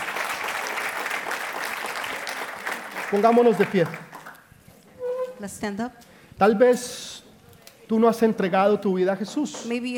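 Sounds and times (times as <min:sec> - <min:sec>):
audience applause: 0:00.0 - 0:04.4
speech: 0:03.1 - 0:04.1, 0:05.4 - 0:07.1, 0:07.9 - 0:09.9.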